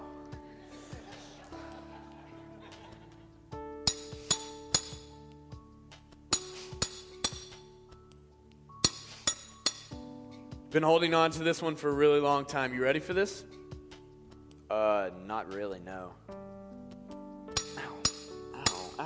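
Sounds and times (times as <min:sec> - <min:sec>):
laughter: 0:00.5 - 0:03.4
chisel striking: 0:03.9 - 0:05.1, 0:06.3 - 0:07.7, 0:08.8 - 0:10.1, 0:17.5 - 0:19.0
speech: 0:10.7 - 0:13.6, 0:14.8 - 0:16.4.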